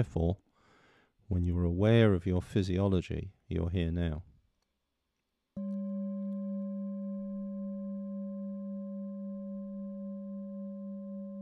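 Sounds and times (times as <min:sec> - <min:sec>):
speech: 0:00.0 - 0:00.4, 0:01.3 - 0:04.3
meditation bell ringing: 0:05.6 - 0:11.4.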